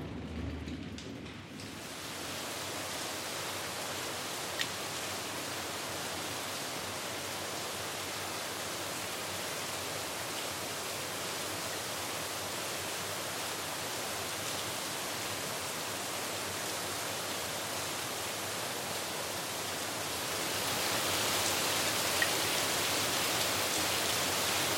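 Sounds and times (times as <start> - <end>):
rain in a back alley: 0.0 - 24.7.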